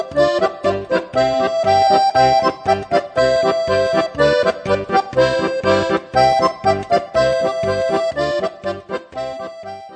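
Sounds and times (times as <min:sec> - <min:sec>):
accordion in Bulgaria: 0:00.0 - 0:09.9.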